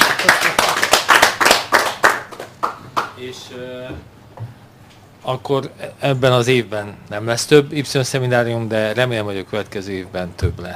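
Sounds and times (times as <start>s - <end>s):
seminar audience clapping: 0.0s - 3.2s
speech: 3.2s - 4.2s, 5.2s - 10.7s.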